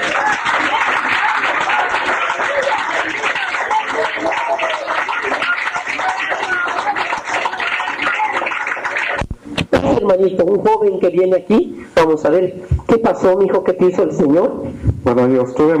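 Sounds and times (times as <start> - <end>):
audience applauding: 0.0 - 9.3
speech: 10.1 - 15.7.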